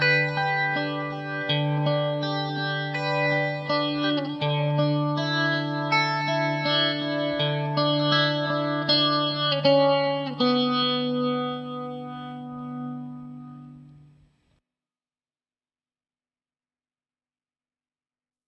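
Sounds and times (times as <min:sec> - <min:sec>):
instrument through Leslie rotary speaker simulation and Marshall amp simulation with gain: 0:00.0 - 0:14.4.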